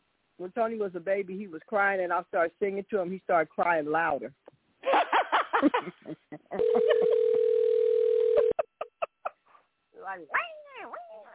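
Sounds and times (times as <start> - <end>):
speech: 0.4 - 4.4, 5.6 - 7.2, 10.1 - 11.3
phone ringing: 6.6 - 8.6.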